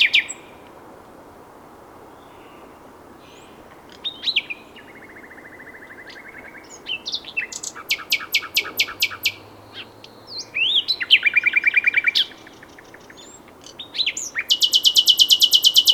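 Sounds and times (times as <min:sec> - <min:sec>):
Common nightingale song: 0:00.0 - 0:00.7, 0:02.1 - 0:15.9.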